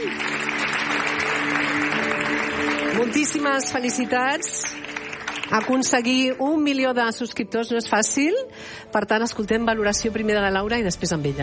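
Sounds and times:
audience applause for an award winner at a prize ceremony: 0:00.0 - 0:06.4
speech: 0:00.1 - 0:00.4, 0:03.0 - 0:04.8, 0:05.5 - 0:11.4.

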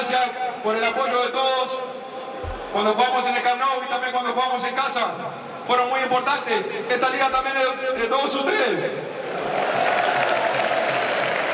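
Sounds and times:
speech: 0:00.1 - 0:02.0, 0:02.7 - 0:09.8
stadium crowd applauding during FC Barcelona's league title celebration speech: 0:02.4 - 0:11.5.

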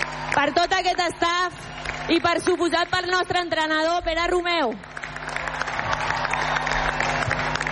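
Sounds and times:
audience applause: 0:00.0 - 0:02.8, 0:04.7 - 0:07.7
speech: 0:00.4 - 0:05.0.

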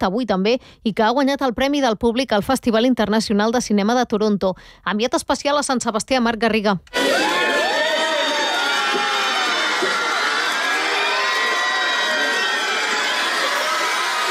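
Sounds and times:
speech: 0:00.0 - 0:07.4
crowd outside Hotel María Cristina in San Sebastián cheering Brad Pitt's arrival: 0:06.9 - 0:14.3.

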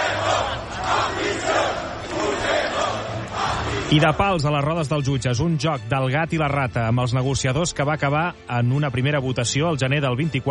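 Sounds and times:
street protest crowd shouting: 0:00.0 - 0:04.3
speech: 0:03.9 - 0:10.4.

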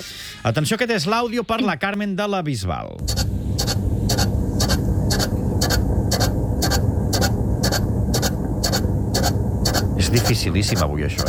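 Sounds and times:
speech: 0:00.0 - 0:03.4, 0:10.1 - 0:11.2
Chinese lucky cat low motor whir: 0:03.0 - 0:11.2
Chinese lucky cat waving arm ticking: 0:03.0 - 0:11.2.

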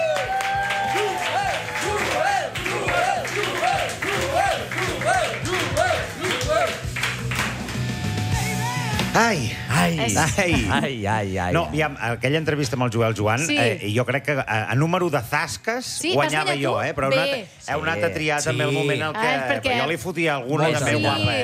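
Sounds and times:
audience applause welcoming a guest: 0:00.0 - 0:09.1
speech: 0:09.2 - 0:21.4.

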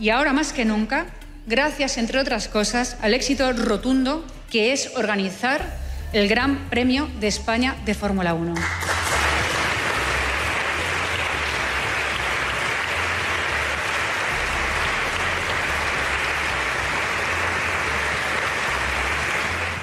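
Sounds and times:
speech: 0:00.0 - 0:08.9
large crowd applauding: 0:08.6 - 0:19.8.

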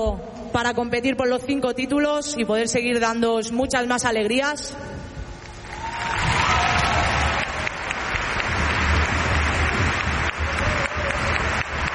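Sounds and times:
speech: 0:00.0 - 0:05.1
audience applause: 0:05.6 - 0:11.9.

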